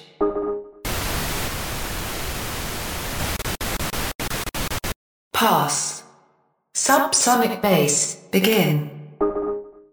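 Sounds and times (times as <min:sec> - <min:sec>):
harsh broadband static hiss: 0:00.9 - 0:05.0
speech: 0:05.4 - 0:06.0, 0:06.8 - 0:08.9.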